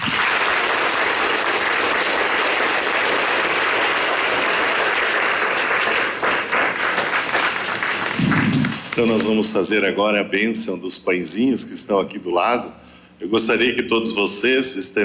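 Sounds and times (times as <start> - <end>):
applause: 0.0 - 9.5
speech: 9.0 - 15.0.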